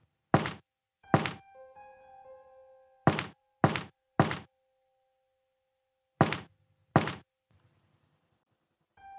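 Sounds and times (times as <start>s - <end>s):
knocks on a door: 0.4s - 1.4s, 3.1s - 4.5s, 6.2s - 7.2s.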